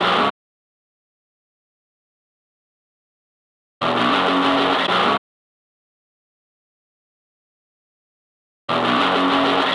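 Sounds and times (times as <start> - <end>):
guitar: 0.0 - 0.3, 3.8 - 5.2, 8.7 - 9.7.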